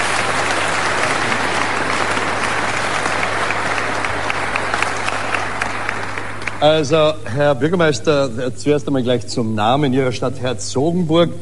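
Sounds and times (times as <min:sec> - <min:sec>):
audience applause: 0:00.0 - 0:07.2
speech: 0:06.6 - 0:11.4.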